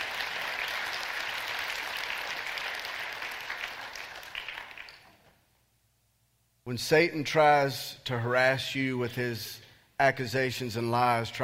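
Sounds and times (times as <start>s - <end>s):
audience applause: 0.0s - 5.2s
speech: 6.7s - 11.4s.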